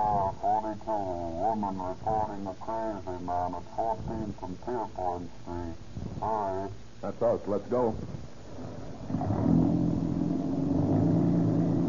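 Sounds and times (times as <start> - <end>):
speech: 0.7 - 8.2
car engine running while driving: 8.6 - 11.8.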